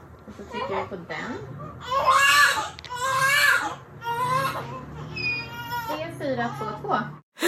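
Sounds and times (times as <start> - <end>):
speech: 0.4 - 2.8, 6.4 - 7.4
newborn baby crying: 1.6 - 6.8.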